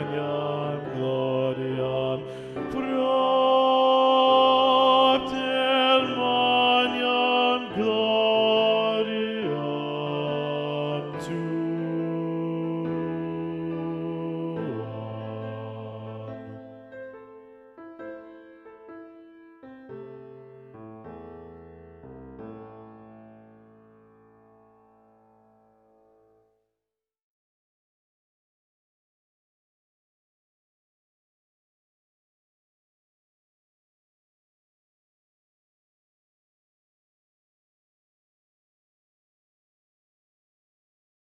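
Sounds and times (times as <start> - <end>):
bass voice singing mass: 0.0 - 16.7.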